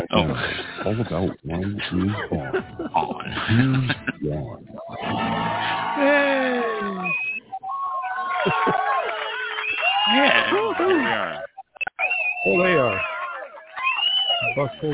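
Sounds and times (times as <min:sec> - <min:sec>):
laughter: 0:00.0 - 0:07.2, 0:08.2 - 0:14.9
speech: 0:00.0 - 0:07.3, 0:08.4 - 0:08.9, 0:10.1 - 0:11.5, 0:12.4 - 0:13.1, 0:14.6 - 0:14.9
crowd screaming and cheering excitedly: 0:04.9 - 0:14.9.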